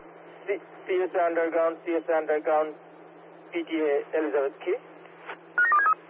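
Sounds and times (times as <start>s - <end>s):
speech: 0.5s - 2.9s, 3.5s - 4.9s
telephone touch-tone dialing beeps: 5.6s - 5.9s.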